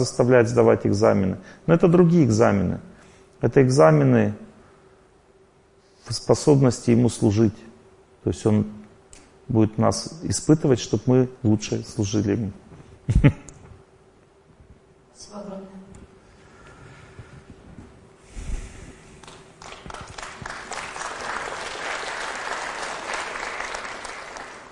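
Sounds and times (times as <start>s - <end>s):
speech: 0.0s - 4.4s, 6.1s - 8.8s, 9.5s - 13.4s
audience applause: 19.2s - 24.7s.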